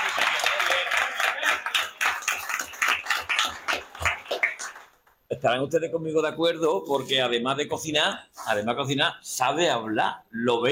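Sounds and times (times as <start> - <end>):
applause: 0.0 - 5.2
speech: 5.3 - 10.7.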